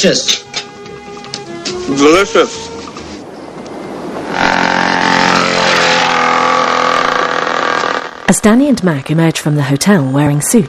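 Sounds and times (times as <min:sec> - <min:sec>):
speech: 0:00.0 - 0:00.4, 0:01.9 - 0:02.7, 0:08.4 - 0:10.6
dirt bike engine roaring outside a hotel: 0:04.3 - 0:08.4.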